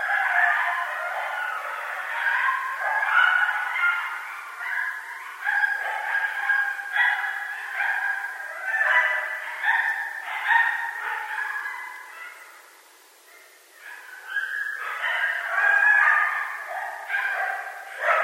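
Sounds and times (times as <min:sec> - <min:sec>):
several coyotes yipping: 0:00.0 - 0:18.2.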